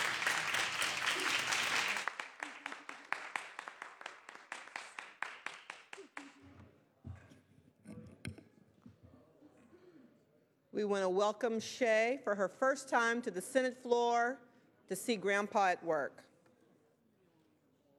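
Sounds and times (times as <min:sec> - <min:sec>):
applause in the Senate chamber: 0:00.0 - 0:06.5
speech: 0:10.8 - 0:16.3.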